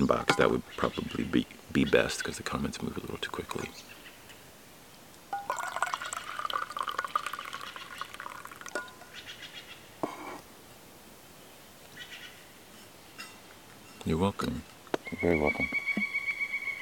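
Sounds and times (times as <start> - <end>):
speech: 0.0 - 4.0, 14.1 - 16.1
coffee pouring into a cup: 5.4 - 9.0.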